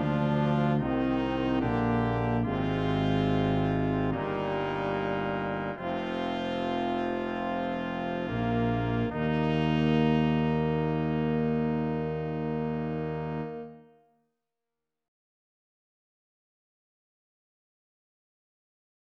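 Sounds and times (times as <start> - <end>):
brass ensemble playing: 0.0 - 14.0.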